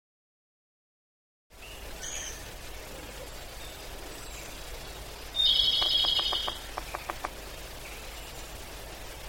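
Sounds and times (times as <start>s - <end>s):
Japanese pygmy woodpecker giving harsh buzzy squeaky calls: 5.3s - 8.4s.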